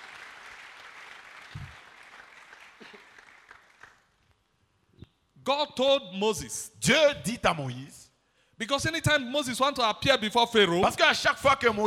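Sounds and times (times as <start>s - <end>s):
church congregation applauding during a Sunday service: 0.0s - 4.2s
speech: 5.5s - 8.0s, 8.6s - 11.8s.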